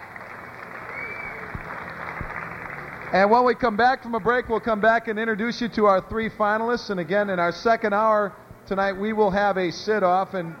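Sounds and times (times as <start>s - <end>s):
audience applause: 0.0s - 3.8s
speech: 3.1s - 10.5s.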